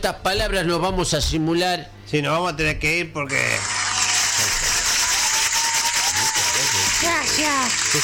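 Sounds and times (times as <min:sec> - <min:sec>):
speech: 0:00.0 - 0:03.8, 0:07.4 - 0:08.0
audience applause: 0:03.6 - 0:08.0.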